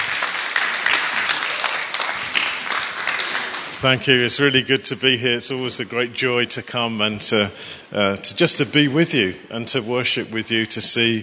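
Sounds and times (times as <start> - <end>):
church congregation applauding to welcome guests: 0.0 - 4.7
speech: 3.8 - 11.2.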